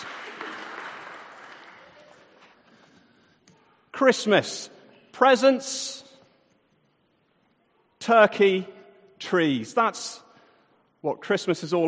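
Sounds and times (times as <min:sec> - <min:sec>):
audience applause: 0:00.0 - 0:02.6
speech: 0:04.0 - 0:06.0, 0:08.0 - 0:10.2, 0:11.0 - 0:11.8.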